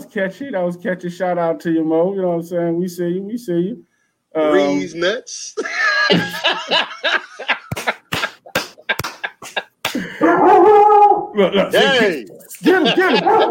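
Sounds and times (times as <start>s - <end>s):
speech: 0.1s - 7.2s, 11.4s - 13.4s
laughter: 5.6s - 10.3s, 11.8s - 13.4s
Doberman barking: 10.2s - 11.3s, 13.0s - 13.4s
Doberman whining yelps: 10.2s - 11.3s.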